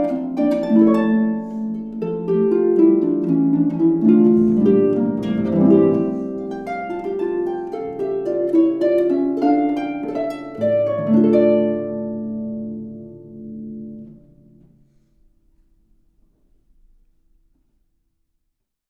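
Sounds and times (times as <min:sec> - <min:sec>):
harp playing a bourree: 0:00.0 - 0:15.0.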